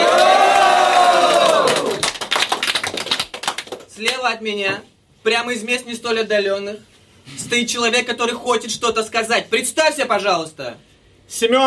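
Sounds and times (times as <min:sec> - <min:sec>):
audience cheering and applause: 0:00.0 - 0:03.3
speech: 0:04.2 - 0:11.6.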